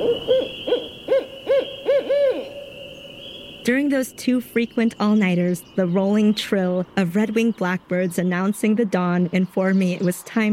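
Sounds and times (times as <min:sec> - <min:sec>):
barred owl hooting call: 0:00.0 - 0:04.1
speech: 0:03.7 - 0:10.5.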